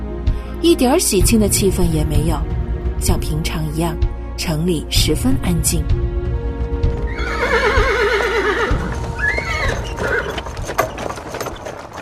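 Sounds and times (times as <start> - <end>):
speech: 0.6 - 6.1
horse hooves clopping drawing a king's carriage: 6.6 - 12.0
horse whinnying: 7.0 - 11.7.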